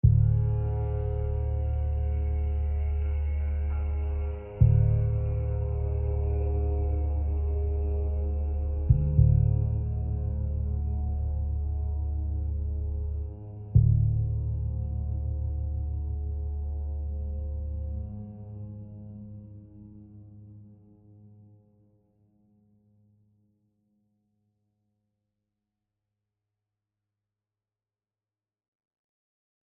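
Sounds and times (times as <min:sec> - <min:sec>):
low tension music: 0:00.0 - 0:22.4.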